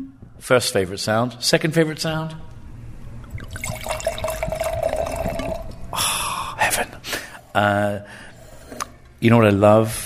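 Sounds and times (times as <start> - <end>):
speech: 0.4 - 2.5, 7.5 - 8.3, 9.2 - 10.0
wine pouring into a glass: 3.3 - 5.8.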